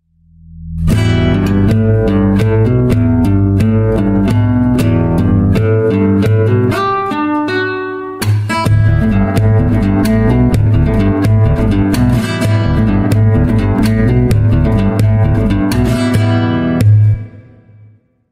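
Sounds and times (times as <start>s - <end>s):
acoustic music: 0.4s - 17.8s.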